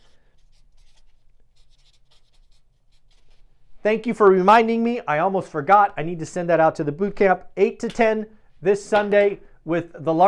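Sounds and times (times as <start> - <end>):
pen scratching on paper jotting down a note by hand: 0.0 - 3.4
speech: 3.8 - 10.2.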